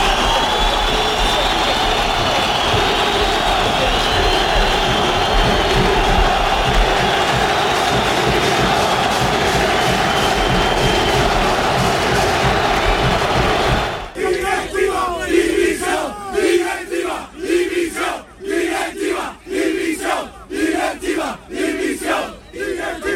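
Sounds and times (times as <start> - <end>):
stadium fans at the Sánchez Pijuán chanting protest against club board: 0.0 - 23.1.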